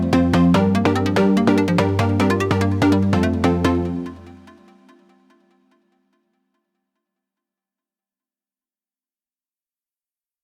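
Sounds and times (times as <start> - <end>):
instrumental music: 0.0 - 4.7.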